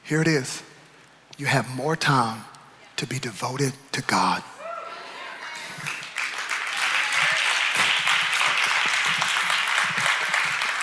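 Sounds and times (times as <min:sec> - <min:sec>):
speech: 0:00.1 - 0:00.7, 0:01.4 - 0:04.5
small scattered audience clapping: 0:05.6 - 0:10.8.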